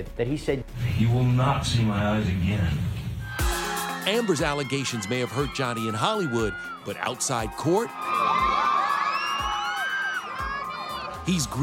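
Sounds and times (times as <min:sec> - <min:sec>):
speech: 0:00.0 - 0:03.0, 0:04.0 - 0:08.4, 0:11.2 - 0:11.6
fans cheering outside court: 0:03.2 - 0:11.6
shrill rising yells: 0:03.2 - 0:11.6.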